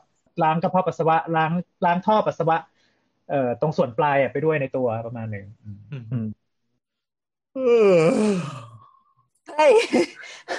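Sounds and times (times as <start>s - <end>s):
speech: 0.4s - 2.7s, 3.3s - 6.4s, 7.6s - 8.7s, 9.6s - 10.5s
person yawning: 7.6s - 9.0s.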